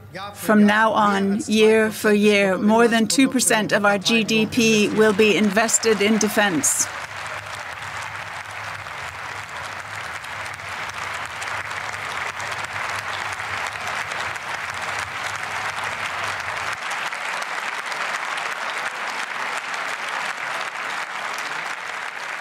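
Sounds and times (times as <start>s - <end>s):
speech: 0.1s - 7.1s
prolonged applause from large standing audience: 2.8s - 22.3s.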